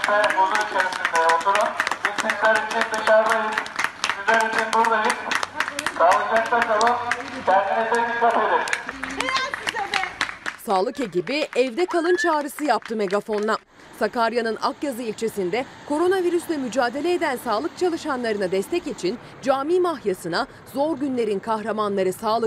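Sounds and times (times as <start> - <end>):
street applause for 112 ambulance crews in Sakarya: 0.0 - 13.6
speech: 0.1 - 3.7, 10.7 - 22.4.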